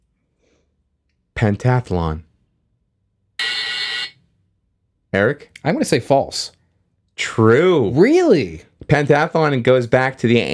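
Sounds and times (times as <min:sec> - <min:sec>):
speech: 0:01.4 - 0:02.3, 0:05.1 - 0:06.6, 0:07.2 - 0:10.5
game show buzzer: 0:03.4 - 0:04.2.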